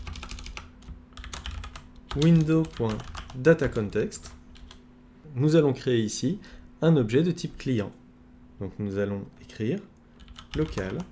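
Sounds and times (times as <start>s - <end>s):
computer keyboard typing: 0.0s - 4.8s, 10.2s - 11.1s
speech: 2.1s - 4.4s, 5.3s - 8.0s, 8.6s - 9.9s, 10.5s - 11.1s.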